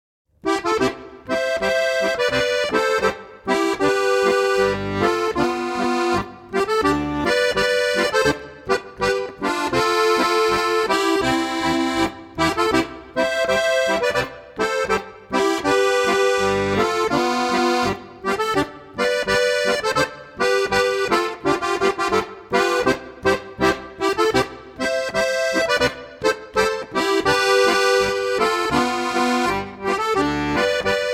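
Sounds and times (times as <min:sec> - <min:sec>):
Bavarian boarischer folk dance music: 0:00.4 - 0:31.1.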